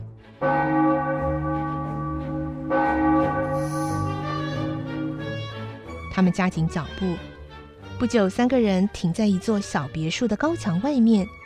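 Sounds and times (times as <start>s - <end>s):
distant church bell strikes: 0.4s - 6.1s
speech: 6.2s - 7.3s, 8.0s - 11.4s.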